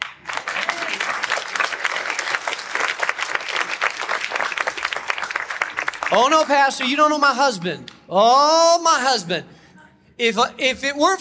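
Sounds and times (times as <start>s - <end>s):
audience clapping: 0.0s - 8.0s
speech: 6.1s - 9.5s, 10.2s - 11.1s.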